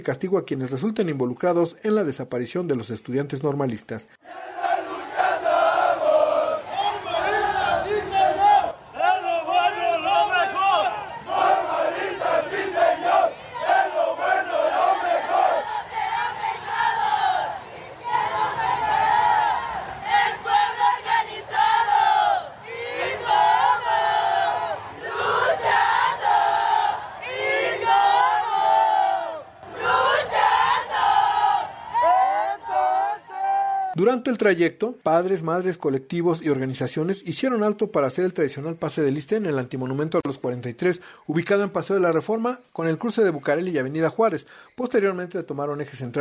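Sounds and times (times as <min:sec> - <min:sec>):
speech: 0:00.0 - 0:04.4, 0:34.2 - 0:46.2
large protest march crowd chanting slogans in unison: 0:04.2 - 0:34.0.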